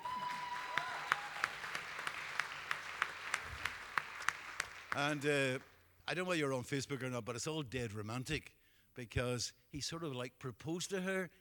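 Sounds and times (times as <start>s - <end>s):
round of applause: 0.0s - 5.8s
speech: 5.0s - 11.3s.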